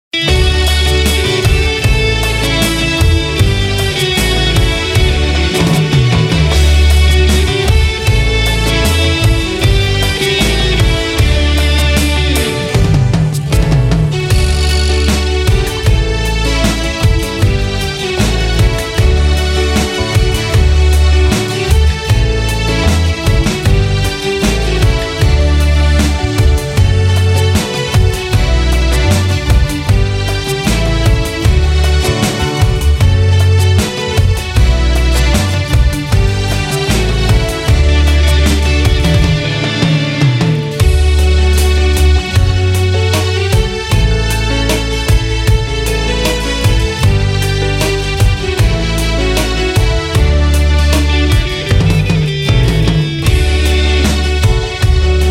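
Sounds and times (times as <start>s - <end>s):
instrumental anthem: 0.0s - 55.2s.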